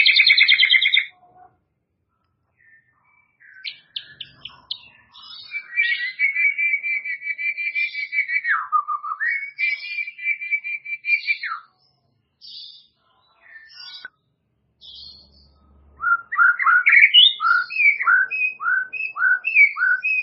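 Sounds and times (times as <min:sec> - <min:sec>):
White-rumped shama song with whistles: 0:00.0 - 0:01.2, 0:02.6 - 0:11.8, 0:13.5 - 0:14.1, 0:16.0 - 0:20.2.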